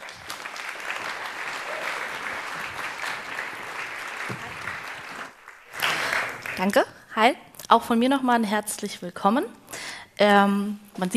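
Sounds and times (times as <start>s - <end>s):
audience applause: 0.0s - 6.7s
speech: 6.6s - 11.1s.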